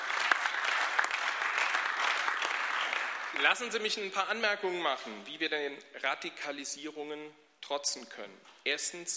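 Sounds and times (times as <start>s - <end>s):
applause in a parliamentary chamber: 0.0s - 3.9s
speech: 3.4s - 9.1s.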